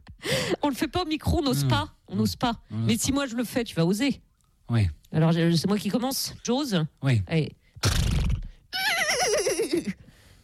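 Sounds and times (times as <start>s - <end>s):
speech: 0.5s - 8.1s
person imitating a horse whinny: 8.7s - 9.9s.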